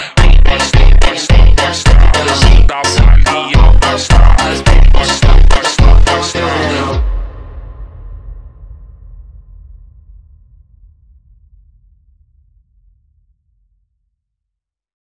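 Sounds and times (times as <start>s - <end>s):
slowed funk music: 0.0s - 7.0s.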